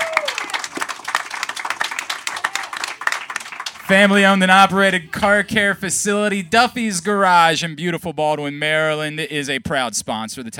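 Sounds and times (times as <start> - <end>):
crowd applause: 0.0 - 4.3
speech: 3.9 - 10.5.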